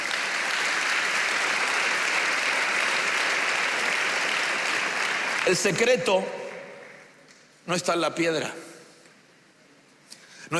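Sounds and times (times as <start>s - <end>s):
audience clapping: 0.0s - 7.6s
speech: 5.5s - 6.4s, 7.7s - 8.7s.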